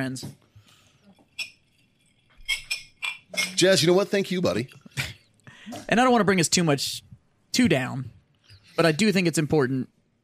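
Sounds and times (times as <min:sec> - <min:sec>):
speech: 0:00.0 - 0:00.4, 0:03.3 - 0:04.8, 0:05.9 - 0:08.2, 0:08.8 - 0:10.0
glasses clinking together in a toast: 0:01.2 - 0:05.3.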